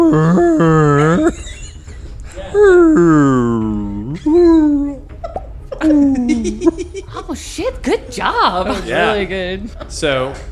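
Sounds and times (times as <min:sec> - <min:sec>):
person vocally imitating a whale call: 0:00.0 - 0:01.3, 0:02.5 - 0:05.0
laughter: 0:00.6 - 0:07.5
speech: 0:08.2 - 0:10.5.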